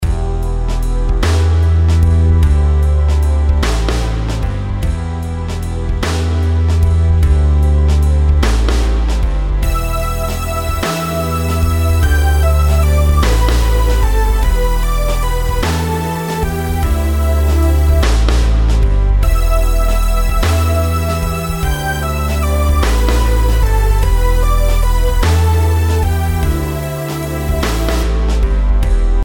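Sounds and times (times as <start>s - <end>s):
compound rhythms: 0.0s - 29.2s.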